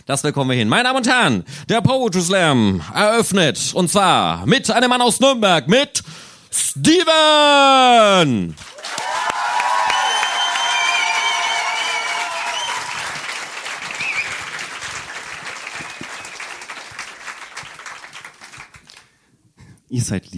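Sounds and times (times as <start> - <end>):
speech: 0.0 - 8.7, 19.9 - 20.3
audience applause: 8.6 - 19.1.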